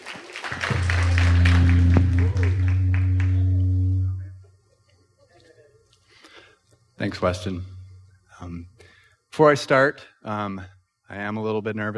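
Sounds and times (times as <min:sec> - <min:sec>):
audience applause: 0:00.0 - 0:03.4
sustained low droning tone: 0:00.6 - 0:04.4, 0:07.0 - 0:08.2
speech: 0:07.2 - 0:07.8, 0:08.4 - 0:08.8, 0:09.4 - 0:11.9.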